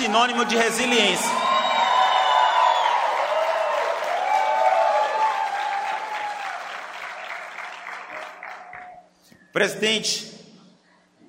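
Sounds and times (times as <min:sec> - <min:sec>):
speech: 0:00.0 - 0:01.6, 0:09.6 - 0:10.3
faint whoops and cheers: 0:00.0 - 0:07.0
audience applause: 0:00.0 - 0:09.0.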